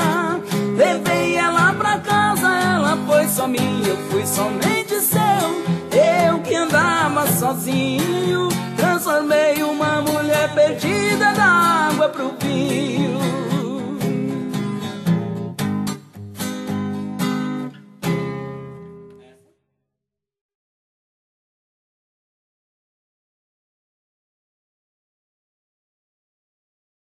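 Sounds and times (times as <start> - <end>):
romantic sertanejo song: 0.0 - 19.1.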